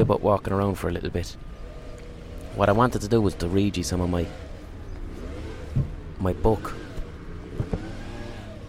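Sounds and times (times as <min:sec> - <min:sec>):
speech: 0:00.0 - 0:01.6, 0:02.6 - 0:04.5, 0:05.8 - 0:06.8
leaf blower's small engine droning: 0:01.4 - 0:08.6
soft thumps: 0:05.7 - 0:06.0, 0:07.0 - 0:07.9.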